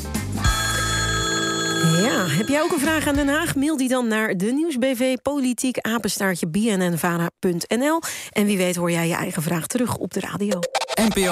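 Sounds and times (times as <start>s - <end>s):
parliamentary division bell ringing: 0.5s - 3.5s
speech: 2.0s - 11.3s.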